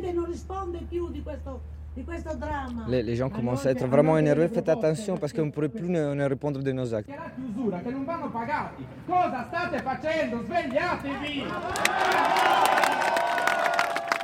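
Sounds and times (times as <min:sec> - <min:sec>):
speech: 0:00.1 - 0:13.2
protest crowd shouting: 0:11.3 - 0:14.2.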